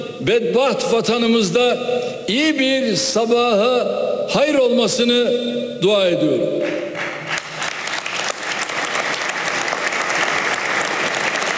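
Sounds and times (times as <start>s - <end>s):
speech: 0.2s - 6.8s
applause interrupting a speech: 6.6s - 11.5s.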